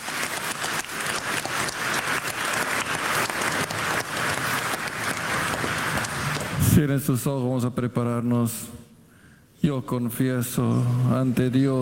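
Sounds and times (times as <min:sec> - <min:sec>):
audience applauding: 0:00.0 - 0:06.7
speech: 0:06.8 - 0:08.8, 0:09.6 - 0:11.8.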